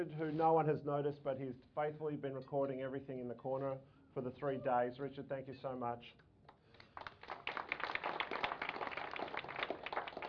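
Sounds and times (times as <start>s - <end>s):
speech: 0.0s - 6.3s
audience applause: 6.9s - 10.2s.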